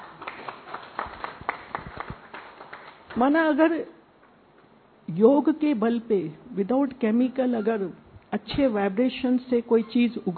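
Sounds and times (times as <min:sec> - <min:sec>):
clapping: 0:00.0 - 0:03.3
speech: 0:03.2 - 0:04.0, 0:05.1 - 0:10.3.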